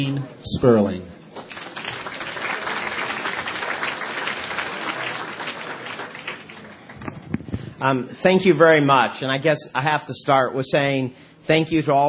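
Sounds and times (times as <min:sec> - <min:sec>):
speech: 0:00.0 - 0:01.1, 0:07.8 - 0:12.0
large audience applause welcoming a speaker: 0:01.3 - 0:07.2.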